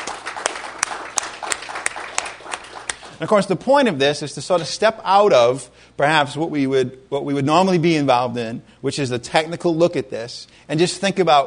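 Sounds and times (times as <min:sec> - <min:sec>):
audience applause at a church gathering honoring a deacon: 0:00.0 - 0:03.2
speech: 0:03.2 - 0:11.4.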